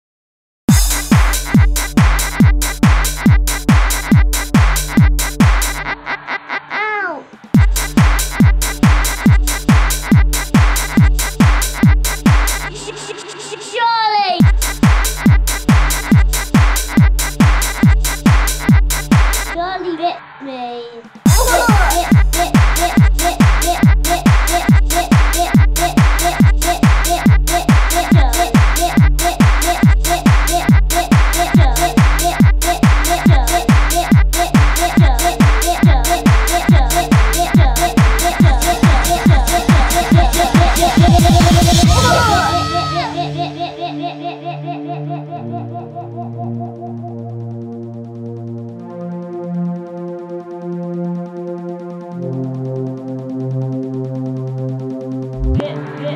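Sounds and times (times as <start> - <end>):
techno remix: 0.7 - 44.0, 55.1 - 56.1
laughter: 5.8 - 7.3, 21.3 - 22.2, 41.8 - 47.3.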